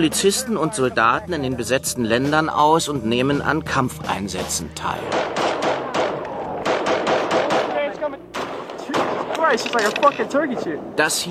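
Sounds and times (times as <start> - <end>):
speech: 0.0 - 5.8, 9.5 - 11.2
gunfire: 5.1 - 9.6.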